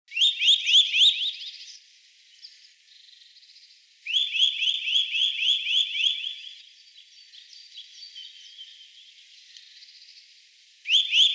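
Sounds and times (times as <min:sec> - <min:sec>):
Eurasian nuthatch calling: 0:00.1 - 0:01.7, 0:04.1 - 0:06.6, 0:10.9 - 0:11.3.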